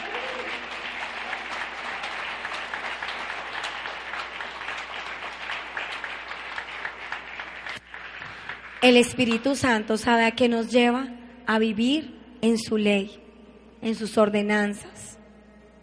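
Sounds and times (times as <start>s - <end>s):
audience applause: 0.0s - 8.8s
speech: 8.8s - 13.2s, 13.8s - 15.1s.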